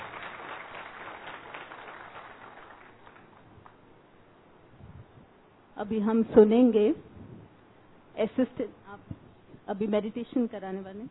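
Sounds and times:
audience applause: 0:00.0 - 0:03.5
speech: 0:05.8 - 0:07.1, 0:08.2 - 0:11.0.

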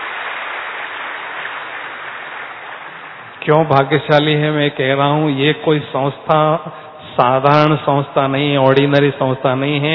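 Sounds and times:
audience applause: 0:00.0 - 0:04.4
speech: 0:03.4 - 0:09.9.

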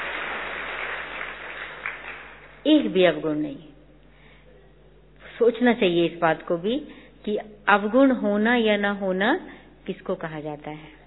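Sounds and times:
audience applause in a class: 0:00.0 - 0:02.6
speech: 0:02.6 - 0:03.7, 0:05.4 - 0:11.0.

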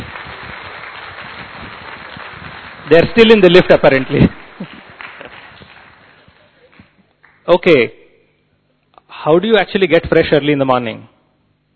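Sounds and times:
audience applause for volunteers operating a lift: 0:00.0 - 0:07.4
speech: 0:02.9 - 0:04.7, 0:07.5 - 0:08.0, 0:09.2 - 0:11.1.

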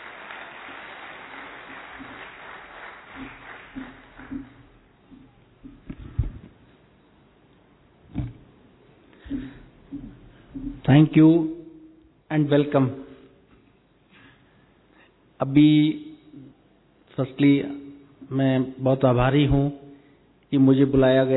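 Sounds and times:
audience clapping to welcome a guest at an event for the forces: 0:00.0 - 0:05.0
speech: 0:10.9 - 0:11.6, 0:12.3 - 0:13.1, 0:15.4 - 0:16.1, 0:17.2 - 0:19.8, 0:20.5 - 0:21.3.

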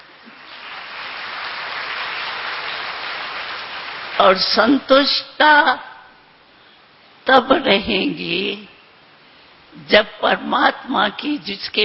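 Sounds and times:
audience clapping: 0:00.0 - 0:04.4
speech: 0:04.2 - 0:05.9, 0:07.3 - 0:08.7, 0:09.8 - 0:11.8.

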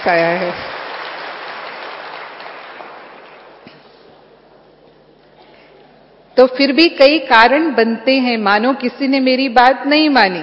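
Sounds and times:
speech: 0:00.0 - 0:00.8, 0:06.4 - 0:10.4
audience applause: 0:00.0 - 0:03.6.

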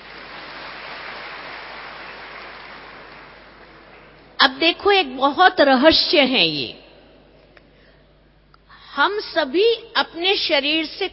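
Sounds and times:
audience clapping: 0:00.0 - 0:04.4
speech: 0:04.4 - 0:06.8, 0:09.0 - 0:11.1.

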